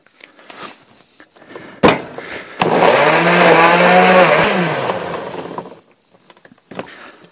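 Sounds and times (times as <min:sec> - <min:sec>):
blender blending marinade ingredients: 0:02.6 - 0:05.8.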